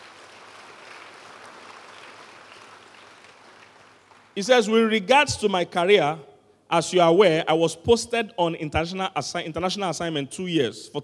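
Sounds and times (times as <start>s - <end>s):
crowd applause: 0.0s - 4.4s
speech: 4.4s - 11.0s.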